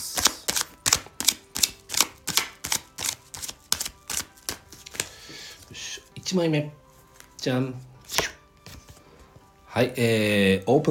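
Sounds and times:
oracle cards being shuffled and drawn: 0.0 - 5.7
speech: 6.3 - 6.8, 7.4 - 8.3, 9.8 - 10.8.

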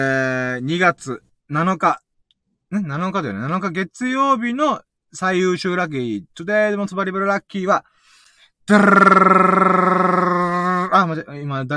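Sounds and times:
speech: 0.0 - 2.0, 2.7 - 7.9, 8.7 - 10.3, 10.9 - 11.7
burp: 8.7 - 11.0.

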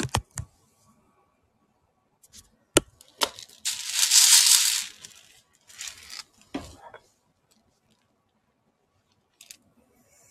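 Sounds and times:
hissing rattle of handling: 3.2 - 6.2.

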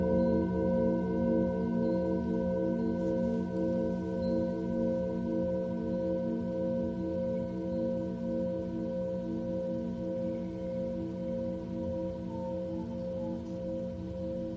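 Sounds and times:
singing bowl ringing in a sustained tone: 0.0 - 14.5.

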